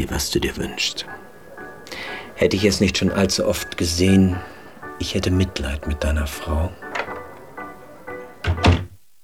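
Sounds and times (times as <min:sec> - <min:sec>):
speech: 0:00.0 - 0:01.2, 0:02.4 - 0:06.8
narrow wooden door opening and closing with heavy thunks: 0:06.8 - 0:07.6, 0:08.2 - 0:09.0.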